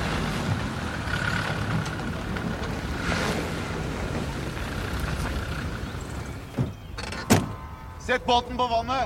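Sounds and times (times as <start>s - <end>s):
cars pulling up: 0.0s - 8.7s
car doors opening: 6.5s - 7.8s
speech: 8.1s - 9.0s.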